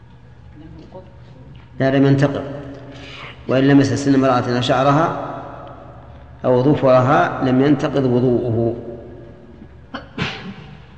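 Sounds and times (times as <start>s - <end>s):
speech: 0.6s - 5.3s, 6.4s - 8.9s
person sneezing during a religious lecture: 10.0s - 10.8s.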